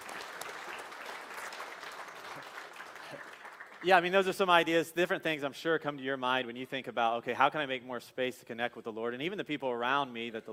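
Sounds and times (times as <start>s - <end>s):
audience clapping: 0.0s - 4.6s
speech: 3.8s - 10.5s.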